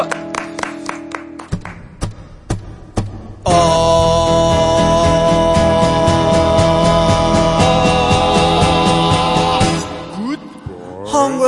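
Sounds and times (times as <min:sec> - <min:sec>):
hand claps: 0:00.0 - 0:02.6
music intro: 0:00.0 - 0:11.3.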